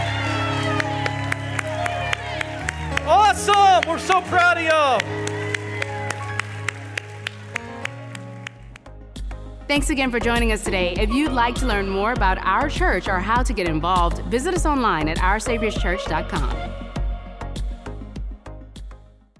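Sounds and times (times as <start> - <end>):
audience applause and cheering: 0.0 - 9.4
speech: 3.4 - 5.3, 9.7 - 16.7.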